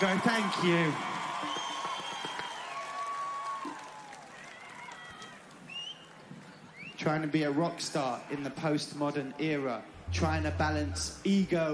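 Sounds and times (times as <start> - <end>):
speech: 0.0 - 1.1, 7.1 - 11.7
audience applause: 0.0 - 5.6
whistles: 1.4 - 2.8, 5.7 - 7.0.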